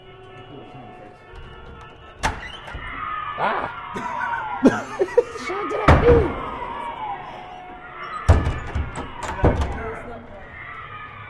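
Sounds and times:
door opening clunk: 1.2 - 3.0, 8.0 - 10.2
laughter: 3.4 - 6.4
speech: 3.4 - 6.5.

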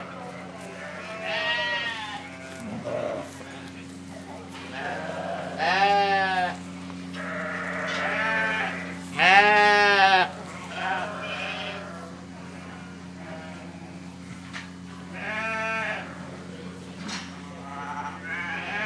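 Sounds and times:
sheep bleating: 0.7 - 3.4, 4.7 - 13.8, 15.1 - 16.2, 17.6 - 18.8.

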